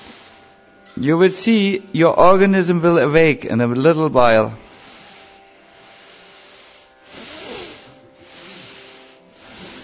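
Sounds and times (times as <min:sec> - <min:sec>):
slow deep breathing during a breathing exercise: 0:00.0 - 0:00.8, 0:04.6 - 0:09.8
speech: 0:01.0 - 0:04.6.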